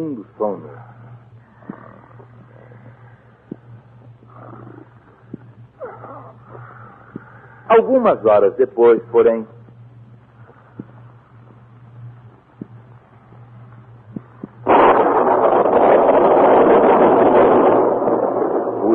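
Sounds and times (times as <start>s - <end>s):
speech: 0.0s - 0.9s, 7.7s - 9.6s
thunderclap of a storm: 14.6s - 18.9s.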